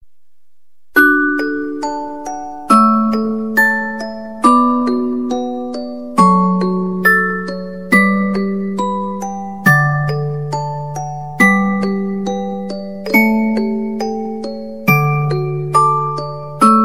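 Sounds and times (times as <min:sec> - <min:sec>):
music box melody: 0:01.0 - 0:16.8.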